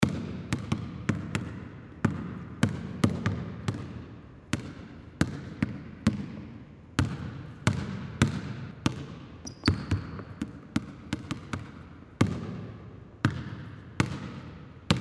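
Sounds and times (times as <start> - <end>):
basketball game ambience: 0.0 - 15.0.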